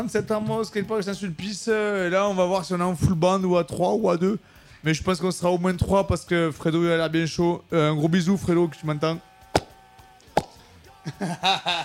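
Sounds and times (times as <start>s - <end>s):
speech: 0.0s - 9.3s, 11.1s - 11.8s
bottle of red wine being uncorked: 9.6s - 9.8s
laughter: 11.0s - 11.8s.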